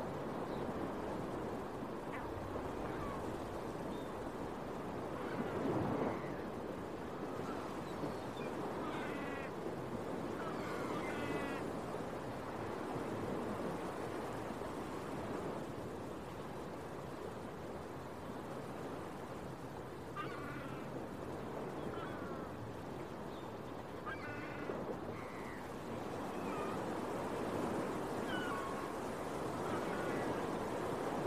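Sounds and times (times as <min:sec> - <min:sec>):
rolling surf: 0:00.0 - 0:31.2
gull cries: 0:08.4 - 0:09.6, 0:10.4 - 0:11.6, 0:20.2 - 0:20.9, 0:24.0 - 0:25.6, 0:28.2 - 0:29.0, 0:29.6 - 0:30.5.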